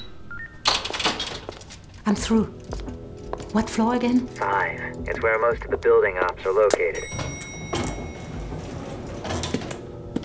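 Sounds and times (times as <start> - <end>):
elevator door closing: 0.6 - 1.8, 6.8 - 10.2
speech: 2.1 - 2.9, 3.5 - 7.2.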